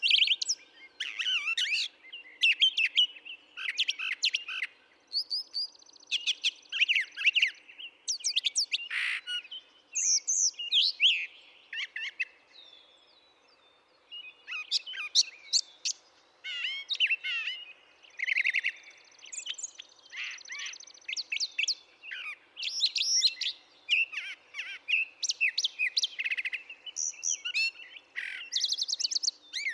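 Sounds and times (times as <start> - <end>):
brown thrasher song: 0.0 - 29.7.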